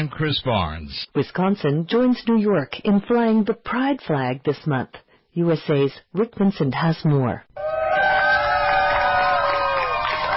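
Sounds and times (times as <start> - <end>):
speech: 0.0 - 7.7
crowd cheering as a rainbow flag is raised over the Wisconsin state capitol: 7.6 - 10.3.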